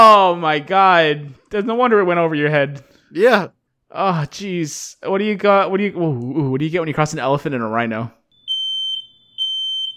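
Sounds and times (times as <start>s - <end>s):
speech: 0.3s - 8.2s
smoke alarm beeping: 8.3s - 9.9s.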